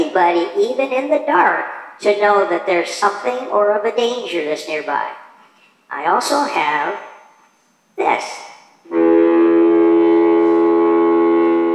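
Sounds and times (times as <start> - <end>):
speech: 0.2 - 5.2, 5.9 - 7.1, 8.0 - 9.1
foghorn blast: 8.9 - 11.7.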